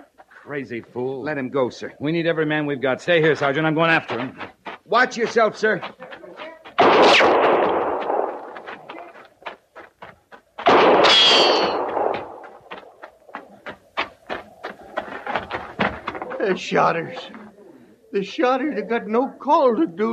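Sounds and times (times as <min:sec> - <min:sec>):
speech: 0:00.5 - 0:06.0, 0:16.5 - 0:17.4, 0:18.1 - 0:20.1
gunshots fired at a horse in a radio drama: 0:06.8 - 0:09.0, 0:10.6 - 0:12.7.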